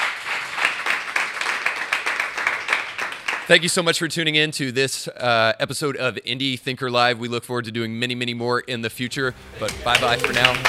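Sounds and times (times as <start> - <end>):
audience applause for a guest at the close of a live show: 0.0 - 3.7, 9.5 - 10.6
speech: 3.5 - 10.6.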